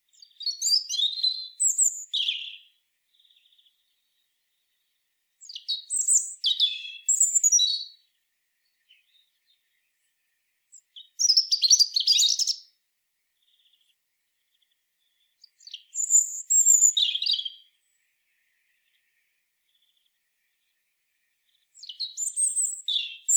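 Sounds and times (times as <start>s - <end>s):
European robin Erithacus rubecula singing high sweet whistles and jumbled trills: 0.1s - 10.1s, 10.7s - 12.8s, 13.4s - 18.0s, 21.4s - 23.3s.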